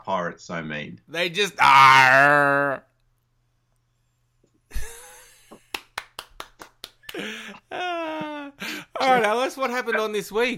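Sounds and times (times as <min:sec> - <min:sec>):
speech: 0:00.0 - 0:02.9, 0:09.2 - 0:10.5
hand clapping: 0:05.5 - 0:07.4
laughter: 0:07.1 - 0:09.4.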